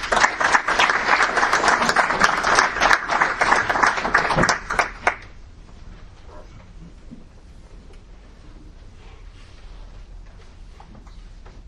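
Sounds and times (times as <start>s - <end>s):
audience applause greeting a speaker: 0.0s - 5.4s.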